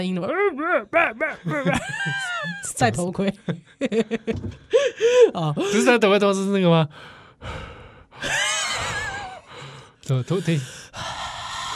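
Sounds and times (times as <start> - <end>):
speech: 0.0 - 8.5, 10.1 - 11.2
laughter: 1.0 - 5.7, 8.2 - 9.5
rapid breathing in a space film soundtrack: 4.6 - 5.8, 6.9 - 11.7.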